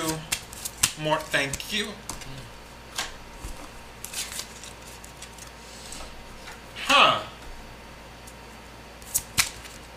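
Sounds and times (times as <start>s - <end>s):
tarot cards shuffled and spilling out: 0.0s - 2.4s, 3.0s - 5.5s, 9.0s - 9.9s
speech: 1.0s - 2.4s.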